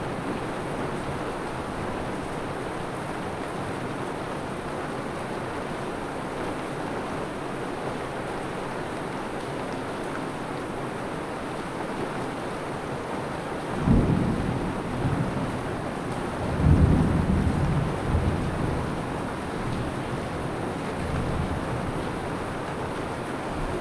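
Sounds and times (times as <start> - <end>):
rain: 0.0 - 23.7
thunder: 13.8 - 19.1.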